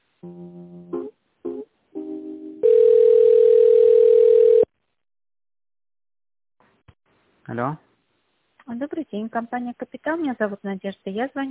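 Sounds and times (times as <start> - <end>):
speech: 0.2 - 0.6, 7.6 - 7.8, 8.8 - 11.4
telephone line beeping tones during a call transfer: 2.6 - 4.7.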